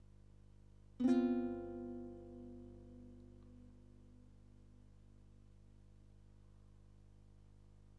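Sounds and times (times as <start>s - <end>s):
guitar: 1.0s - 5.1s.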